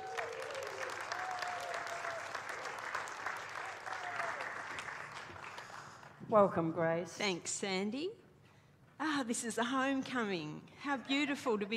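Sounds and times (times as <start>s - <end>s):
church congregation applauding to welcome a returning speaker: 0.0s - 6.2s
speech: 6.3s - 8.2s, 9.1s - 11.7s.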